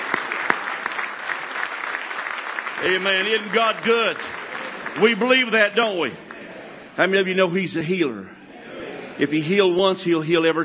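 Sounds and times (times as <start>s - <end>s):
church congregation clapping in praise during a morning service: 0.0s - 6.4s
speech: 2.8s - 6.3s, 7.0s - 8.4s, 9.2s - 10.6s.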